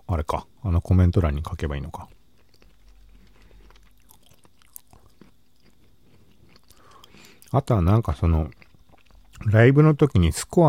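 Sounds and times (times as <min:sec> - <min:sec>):
speech: 0:00.1 - 0:02.2, 0:07.5 - 0:08.6, 0:09.4 - 0:10.6
chewing edamame: 0:01.9 - 0:09.5.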